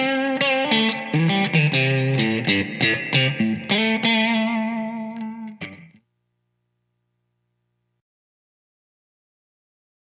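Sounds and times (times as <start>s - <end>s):
Strat electric guitar blues in 4th position with light grind and reverb: 0.0s - 6.0s.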